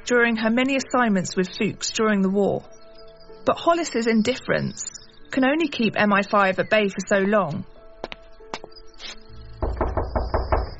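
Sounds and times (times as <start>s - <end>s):
speech: 0.1s - 2.8s, 3.4s - 7.7s
knocking on a house door in a Cotswolds village: 9.6s - 10.7s.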